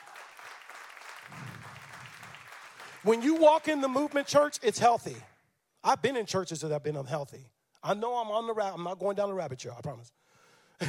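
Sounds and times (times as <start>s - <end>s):
audience clapping: 0.0s - 5.3s
speech: 3.0s - 10.8s.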